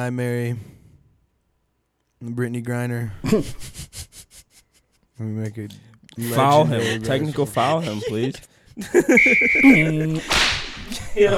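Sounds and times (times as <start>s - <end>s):
speech: 0.0s - 0.7s, 2.2s - 4.2s, 5.2s - 10.6s, 11.2s - 11.3s
laughter: 3.2s - 4.9s, 6.2s - 11.3s
referee whistle sound effect: 9.1s - 10.0s.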